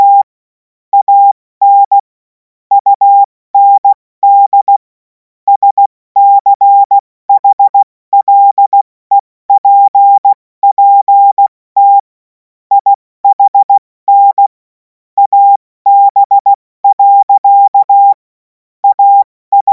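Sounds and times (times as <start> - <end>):
CW Morse code beeps: 0.0 - 0.3, 1.0 - 2.0, 2.7 - 4.8, 5.5 - 12.1, 12.7 - 14.5, 15.2 - 18.2, 18.8 - 19.7.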